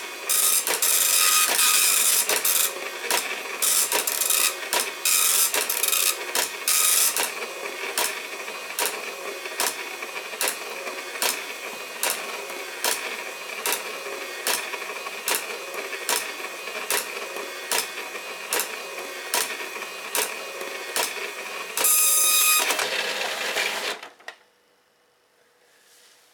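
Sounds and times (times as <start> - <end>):
dot matrix printer printing: 0.0 - 24.2.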